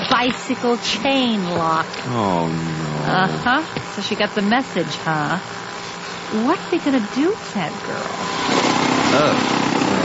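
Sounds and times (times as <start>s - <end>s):
steady loud motor whir: 0.0s - 10.0s
speech: 0.2s - 5.6s, 6.3s - 8.5s, 9.1s - 9.6s.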